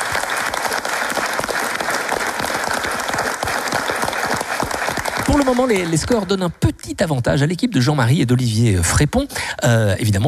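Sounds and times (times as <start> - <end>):
audience applause: 0.0 - 6.6
speech: 5.3 - 10.2.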